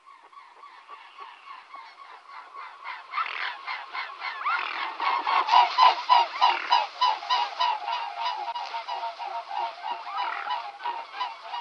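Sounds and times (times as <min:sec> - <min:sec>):
mute swan honking: 0:02.6 - 0:11.5.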